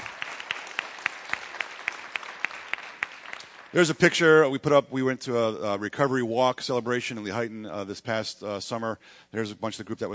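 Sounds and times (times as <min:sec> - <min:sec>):
audience claps for Celebrate Recovery ministry group: 0:00.0 - 0:03.8
speech: 0:03.7 - 0:10.1.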